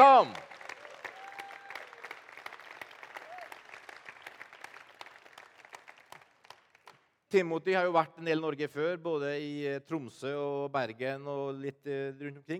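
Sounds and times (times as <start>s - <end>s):
audience applause: 0.0s - 7.0s
speech: 7.3s - 12.5s.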